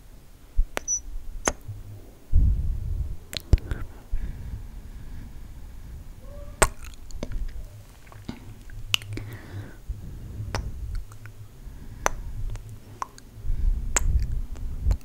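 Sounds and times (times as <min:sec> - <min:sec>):
mic kisses with lip gloss: 0:00.6 - 0:02.5, 0:03.3 - 0:04.0, 0:06.6 - 0:09.5, 0:10.5 - 0:11.4, 0:12.0 - 0:13.3, 0:13.9 - 0:15.0.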